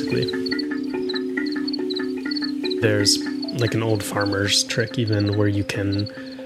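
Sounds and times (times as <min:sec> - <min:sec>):
crickets chirping: 0:00.0 - 0:06.4
speech: 0:00.1 - 0:00.4, 0:02.8 - 0:06.3.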